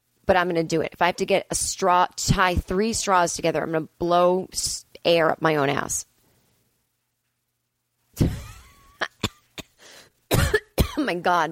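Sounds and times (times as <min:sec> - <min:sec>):
speech: 0:00.3 - 0:06.1, 0:11.1 - 0:11.5
person coughing from laughing: 0:08.2 - 0:11.0.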